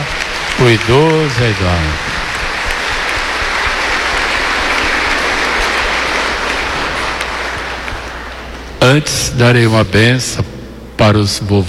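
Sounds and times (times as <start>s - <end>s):
audience applause: 0.0s - 8.6s
speech: 0.6s - 2.1s, 8.9s - 11.6s.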